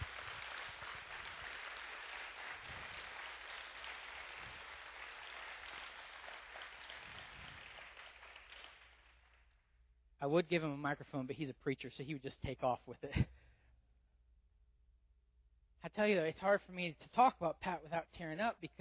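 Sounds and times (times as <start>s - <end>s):
audience round of applause: 0.0s - 9.5s
speech: 10.2s - 13.4s, 15.9s - 18.7s.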